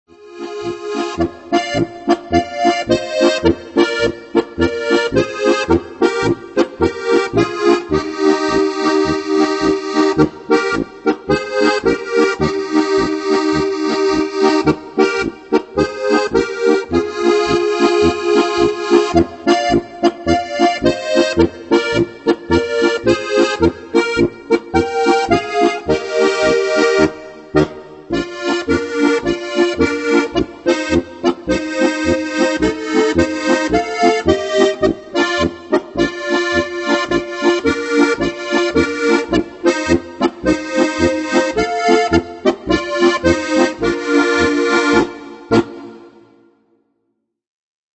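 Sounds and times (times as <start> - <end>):
polka music: 0.1 - 46.7.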